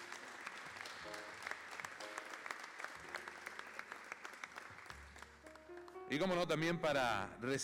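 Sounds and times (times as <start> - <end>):
audience applause: 0.0 - 6.0
speech: 6.1 - 7.6.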